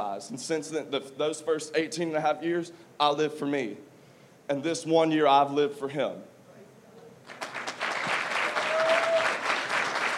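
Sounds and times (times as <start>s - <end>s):
speech: 0.0s - 3.9s, 4.5s - 6.3s
audience clapping: 7.3s - 10.1s.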